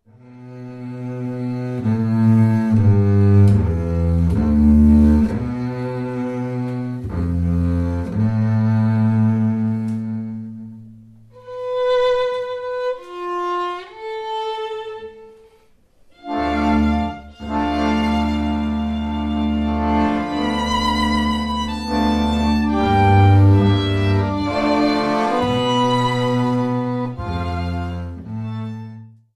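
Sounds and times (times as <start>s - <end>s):
larghetto piece: 0.8s - 29.1s.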